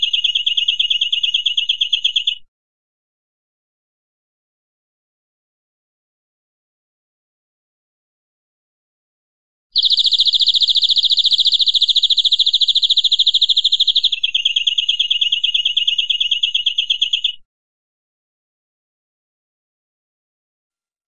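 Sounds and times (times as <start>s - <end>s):
European greenfinch buzzy trill: 0.0s - 2.4s, 9.8s - 17.4s.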